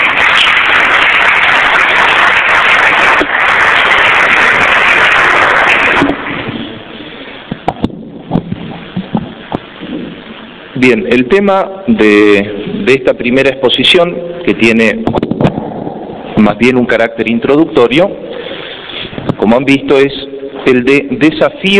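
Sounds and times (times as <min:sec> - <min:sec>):
crowd applauding: 0:00.0 - 0:07.0
speech: 0:10.8 - 0:15.2, 0:16.4 - 0:18.2, 0:19.5 - 0:21.7.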